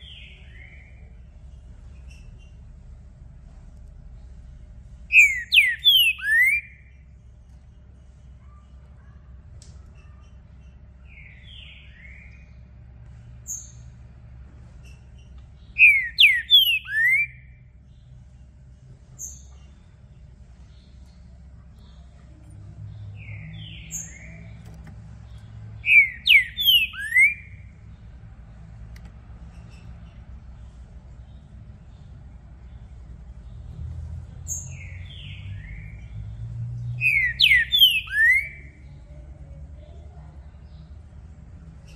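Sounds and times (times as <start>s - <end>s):
green-winged saltator song: 5.1s - 6.9s, 15.8s - 17.6s, 25.8s - 27.6s, 37.0s - 38.7s.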